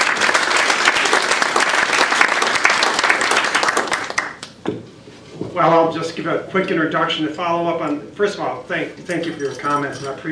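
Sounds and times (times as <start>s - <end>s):
round of applause: 0.0s - 4.4s
speech: 5.6s - 10.3s.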